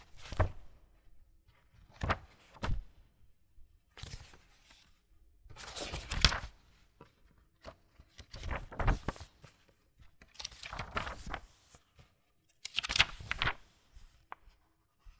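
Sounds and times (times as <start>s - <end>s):
page flipping: 0.1s - 0.7s, 5.6s - 6.6s, 7.6s - 9.5s, 10.2s - 11.8s, 12.6s - 14.6s.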